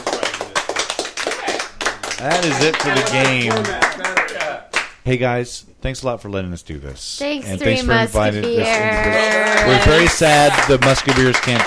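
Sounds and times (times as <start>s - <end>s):
round of applause: 0.0s - 4.9s, 8.4s - 11.6s
speech: 2.2s - 11.6s.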